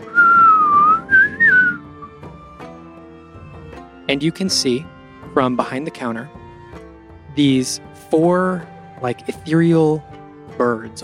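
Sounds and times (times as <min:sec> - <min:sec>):
person whistling with pursed lips: 0:00.0 - 0:02.2
speech: 0:04.1 - 0:06.4, 0:07.4 - 0:11.0.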